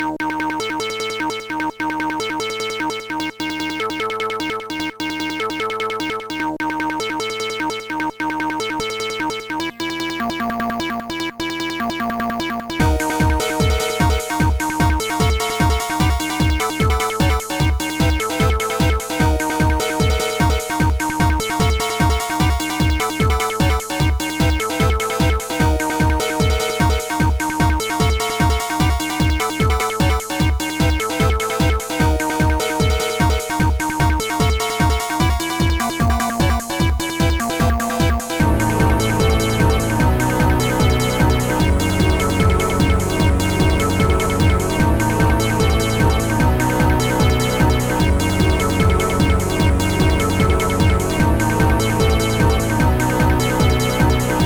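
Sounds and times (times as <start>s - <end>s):
tiny acid chiptune music: 0.0s - 54.4s.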